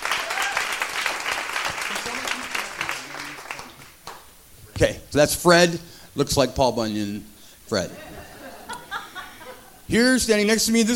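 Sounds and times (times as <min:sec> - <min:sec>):
audience applause at a comedy club show: 0:00.0 - 0:04.3
laughter: 0:01.9 - 0:03.4, 0:07.9 - 0:09.8
speech: 0:04.8 - 0:08.2, 0:09.9 - 0:10.9.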